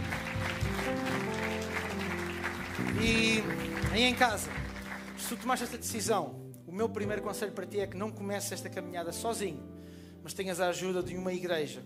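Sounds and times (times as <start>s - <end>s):
audience applause: 0.0s - 5.8s
speech: 2.8s - 4.6s, 5.3s - 11.8s.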